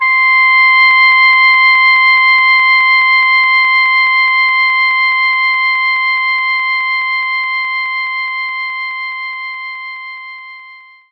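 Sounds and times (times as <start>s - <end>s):
oboe note C5: 0.0s - 11.1s.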